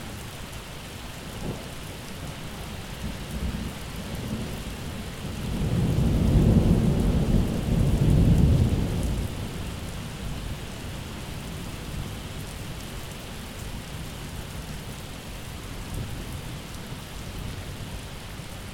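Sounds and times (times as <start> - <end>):
thunder in a summer storm: 5.5 - 9.5.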